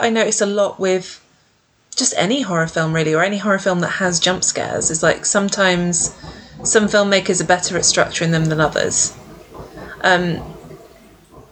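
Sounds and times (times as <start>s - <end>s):
speech: 0.0s - 1.2s, 1.9s - 9.2s, 10.0s - 10.6s
train passing by outside: 4.9s - 11.5s.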